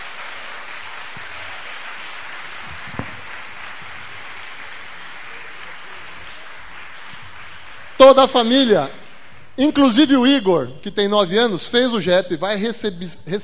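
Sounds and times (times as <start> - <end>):
audience applause: 0.0 - 9.6
speech: 8.0 - 9.0, 9.6 - 13.4.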